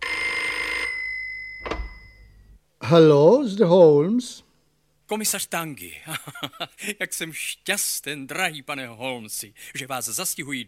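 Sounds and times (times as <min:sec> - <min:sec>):
telephone ringing with an electronic bell tone: 0:00.0 - 0:02.4
speech: 0:02.9 - 0:04.5, 0:05.1 - 0:10.6.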